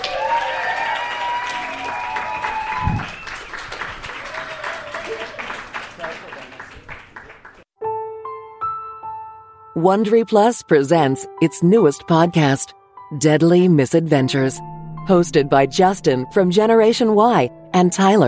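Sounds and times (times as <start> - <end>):
audience whoops: 0.0 - 6.6
audience clapping at a live event: 0.0 - 7.7
speech: 9.8 - 18.2.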